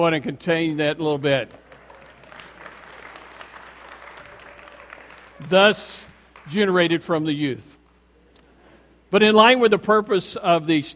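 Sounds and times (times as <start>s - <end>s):
speech: 0.0s - 1.6s, 5.4s - 7.7s, 9.1s - 10.9s
audience applause: 1.4s - 6.6s.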